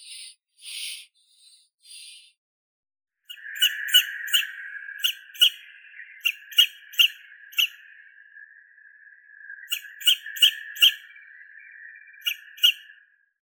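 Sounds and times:
young Athene noctua little owl: 3.3s - 7.8s, 9.6s - 11.0s, 12.2s - 12.8s.

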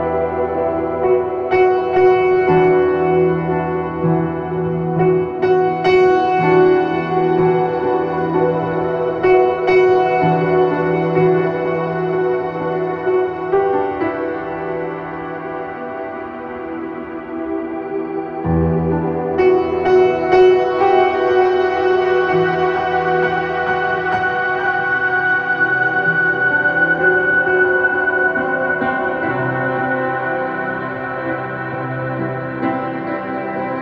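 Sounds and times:
ambience: 0.0s - 33.7s
piano: 0.0s - 33.7s.

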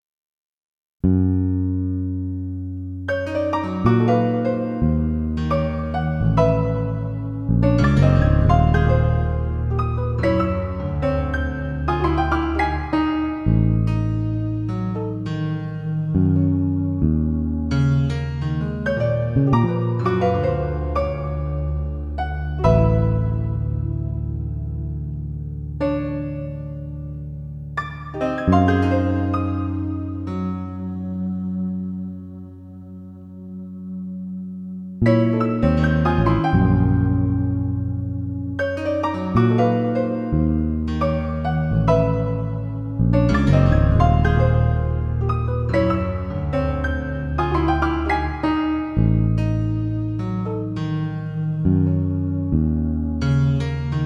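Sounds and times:
unprepared piano: 1.0s - 54.0s.

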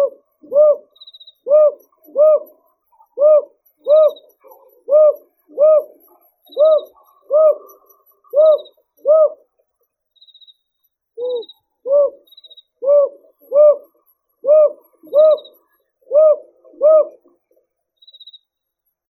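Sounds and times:
brown hawk-owl Ninox scutulata calling: 0.0s - 9.4s, 11.2s - 17.2s.

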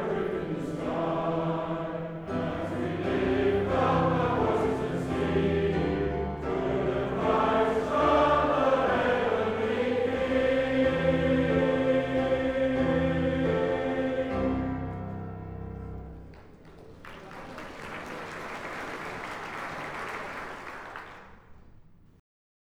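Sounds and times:
Welsh male voice choir singing: 0.0s - 15.1s.

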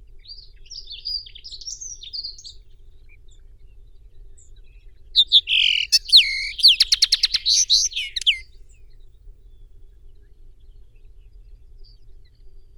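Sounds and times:
linnet Carduelis cannabina: 5.2s - 8.4s.

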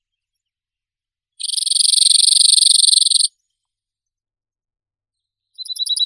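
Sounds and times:
ovsyanka ogorodnaya Emberiza cirlus calling: 1.4s - 3.3s.

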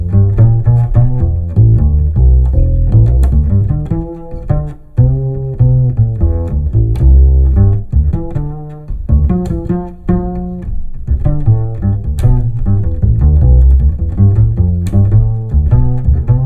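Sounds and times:
musical improvisation: 0.0s - 16.4s.

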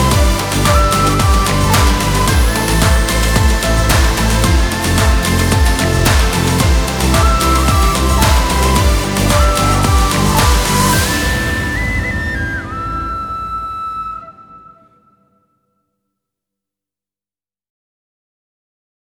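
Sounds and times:
karaoke backing track: 0.0s - 14.0s.

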